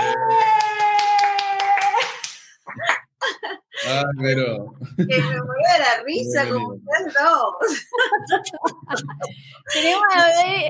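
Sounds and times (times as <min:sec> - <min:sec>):
people clapping: 0:00.0 - 0:02.7
speech: 0:04.0 - 0:10.6
laughter: 0:07.6 - 0:10.0.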